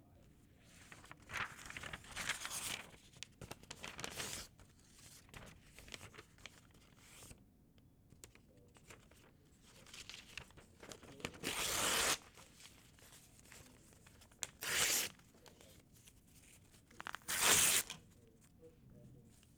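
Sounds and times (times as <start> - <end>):
paper folding: 0.6 - 7.4, 8.2 - 18.6
paper ripping: 1.0 - 3.0, 3.7 - 4.4, 10.4 - 12.5, 14.4 - 15.2, 17.0 - 18.0.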